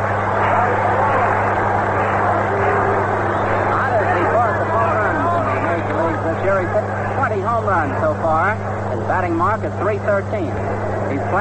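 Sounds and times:
stadium crowd applauding a pinch hitter: 0.0 - 8.5
speech: 9.6 - 11.3.

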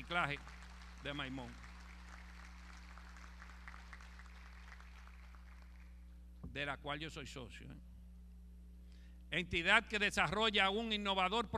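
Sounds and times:
crowd applauding: 0.0 - 6.0
constant low electrical hum: 0.0 - 11.5
speech: 0.1 - 1.7, 6.5 - 7.9, 9.3 - 11.5.

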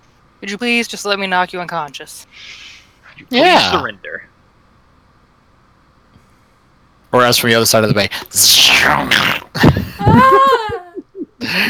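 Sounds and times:
speech: 0.4 - 4.3, 7.1 - 10.6, 11.4 - 11.6
man screaming: 10.0 - 10.8.

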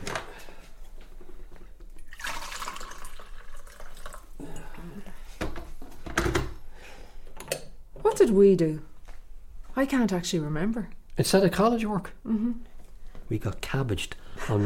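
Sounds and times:
tea poured into a cup: 2.0 - 4.4
speech: 8.2 - 8.9, 9.8 - 12.7, 13.3 - 14.6.

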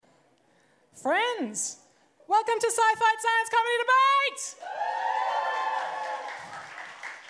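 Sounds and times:
speech: 1.0 - 4.8
audience cheering: 4.6 - 7.2.

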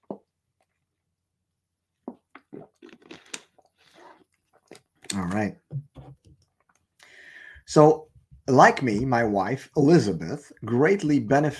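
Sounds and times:
sipping a drink of water: 2.0 - 7.7
speech: 5.2 - 5.6, 7.7 - 11.5.

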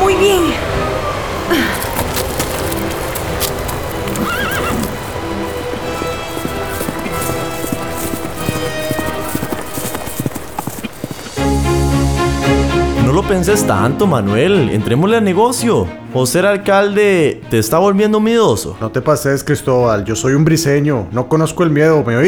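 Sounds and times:
speech: 0.1 - 0.7, 13.3 - 22.2
ridden horse's hooves clip-clopping: 1.2 - 12.2.

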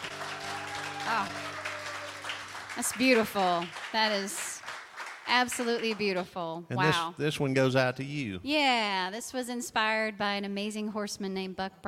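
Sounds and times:
audience applause: 0.0 - 6.3
speech: 1.1 - 1.5, 2.8 - 4.5, 5.3 - 11.8.

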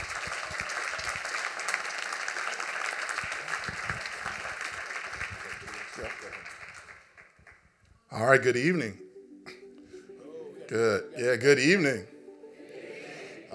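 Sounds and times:
audience applause welcoming two speakers at an evening talk: 0.0 - 7.6
speech: 8.2 - 9.0, 10.7 - 12.1.

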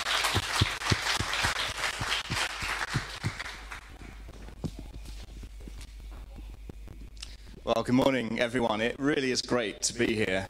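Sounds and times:
round of applause: 0.0 - 4.2
speech: 7.7 - 10.4.

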